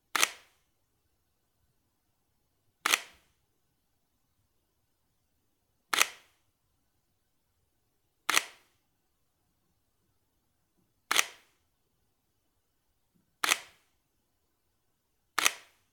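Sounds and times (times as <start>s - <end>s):
Sony A7 III mirrorless camera shutter: 0.2s - 0.6s, 2.8s - 3.3s, 5.9s - 6.4s, 8.3s - 8.7s, 11.1s - 11.6s, 13.4s - 13.8s, 15.4s - 15.8s.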